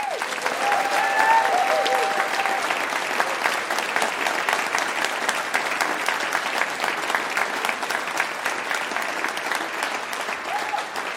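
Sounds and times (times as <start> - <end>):
faint whistles and cheers: 0.0 - 2.8
audience applause: 0.0 - 11.1.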